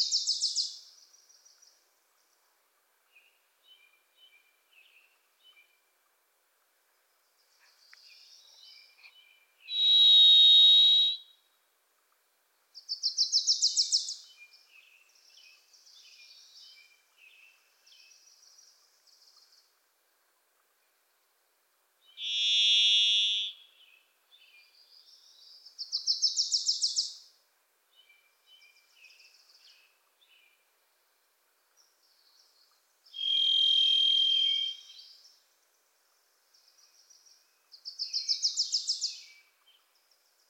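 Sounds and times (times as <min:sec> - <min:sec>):
varied thrush long buzzy whistle: 0:09.7 - 0:11.2, 0:22.2 - 0:23.6, 0:33.2 - 0:34.9
small bird fast rising chattering trill: 0:22.2 - 0:23.5.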